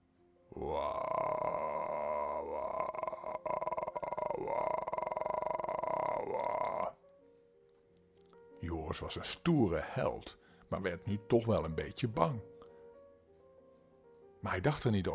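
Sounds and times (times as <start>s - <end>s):
dragon roaring and growling: 0.5s - 7.0s
speech: 8.9s - 12.5s, 14.4s - 15.1s.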